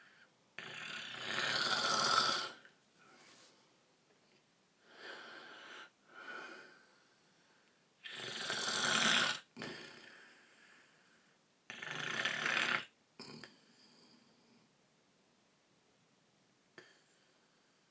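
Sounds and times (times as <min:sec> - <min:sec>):
loud rasping snores: 0:00.6 - 0:02.6, 0:08.0 - 0:10.2, 0:11.7 - 0:13.6.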